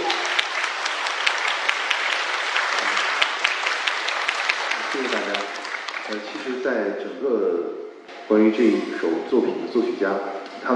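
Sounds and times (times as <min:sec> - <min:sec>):
audience applause: 0:00.0 - 0:06.9
speech: 0:06.1 - 0:10.7.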